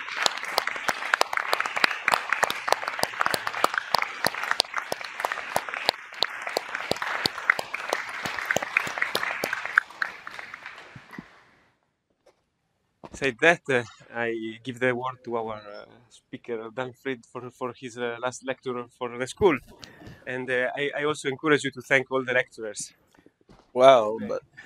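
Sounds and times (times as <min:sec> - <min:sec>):
room full of people applauding: 0:00.0 - 0:11.5
speech: 0:13.2 - 0:15.7, 0:16.3 - 0:23.0, 0:23.7 - 0:24.5.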